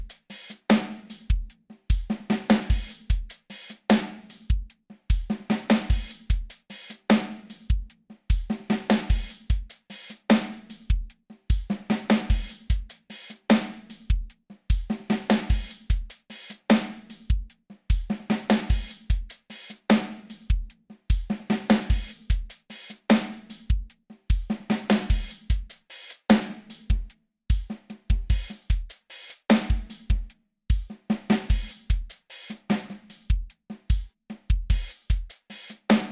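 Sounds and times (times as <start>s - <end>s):
drums playing: 0.0s - 36.1s.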